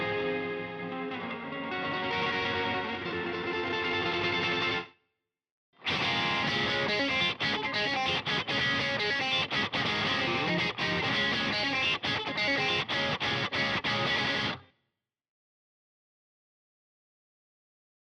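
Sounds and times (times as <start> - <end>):
lead electric guitar stem: 0.0 - 4.9, 5.8 - 14.6.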